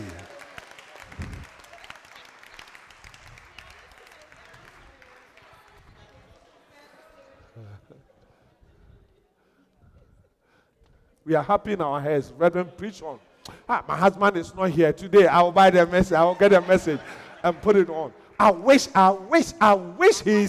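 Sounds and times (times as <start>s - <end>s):
audience clapping and cheering: 0.0s - 6.6s
laughter: 6.3s - 9.1s, 13.2s - 20.4s
speech: 11.3s - 20.4s.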